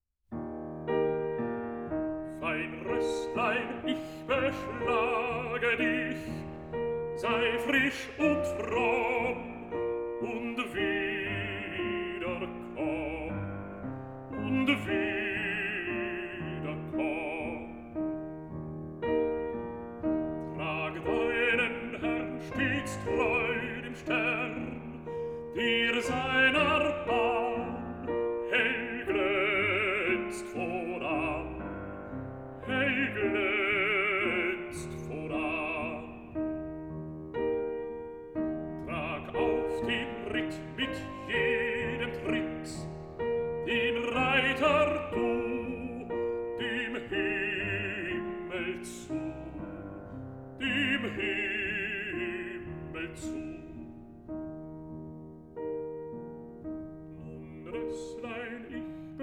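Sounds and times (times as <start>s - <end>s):
piano: 0.0s - 59.2s
person singing: 2.2s - 18.2s, 20.3s - 31.8s, 32.6s - 36.7s, 38.6s - 50.0s, 50.6s - 54.0s, 56.8s - 59.2s.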